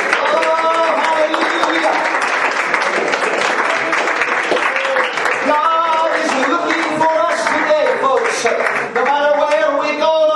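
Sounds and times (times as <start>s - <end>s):
audience shouting praise: 0.0s - 6.5s
audience clapping hands: 0.0s - 10.2s.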